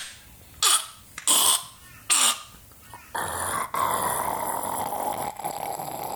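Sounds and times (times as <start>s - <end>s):
voice imitating a cat purring: 3.1s - 6.1s.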